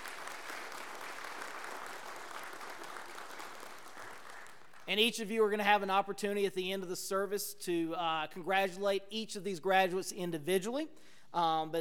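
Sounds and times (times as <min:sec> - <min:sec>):
church audience applause: 0:00.0 - 0:04.9
speech: 0:04.9 - 0:11.7.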